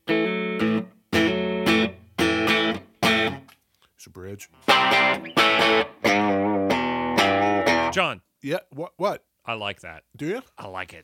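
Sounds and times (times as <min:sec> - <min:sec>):
distorted electric guitar chords on a neck DiMarzio PAF pickup: 0:00.0 - 0:03.5, 0:04.6 - 0:08.0
speech: 0:04.0 - 0:06.6, 0:07.9 - 0:11.0.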